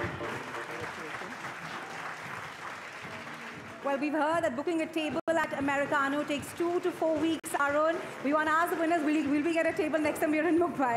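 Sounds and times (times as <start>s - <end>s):
audience applause: 0.0s - 4.1s, 6.0s - 10.6s
speech: 3.9s - 10.9s.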